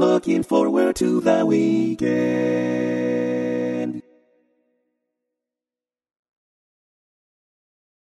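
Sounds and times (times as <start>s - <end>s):
tenor singing barbershop tag: 0.0s - 4.1s.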